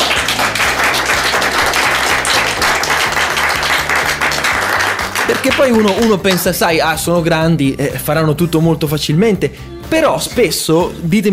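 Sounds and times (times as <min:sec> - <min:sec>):
group of parents applauding: 0:00.0 - 0:06.7
speech: 0:05.4 - 0:11.3.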